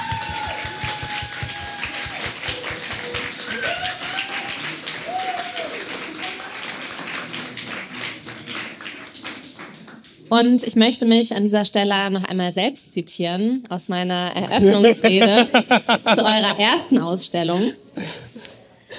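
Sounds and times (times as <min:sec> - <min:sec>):
people whooping: 0:00.0 - 0:06.4
audience applause: 0:00.0 - 0:10.1
speech: 0:10.3 - 0:17.8
laughter: 0:14.4 - 0:17.0.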